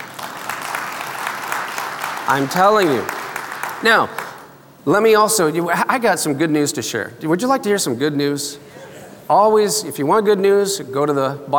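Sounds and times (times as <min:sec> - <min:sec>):
audience clapping: 0:00.0 - 0:04.6
speech: 0:02.3 - 0:03.2, 0:03.8 - 0:04.2, 0:04.8 - 0:11.5.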